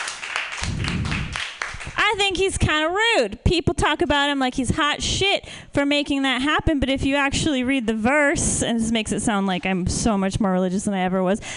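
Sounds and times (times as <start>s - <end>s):
audience clapping: 0.0s - 2.2s
speech: 2.1s - 11.5s.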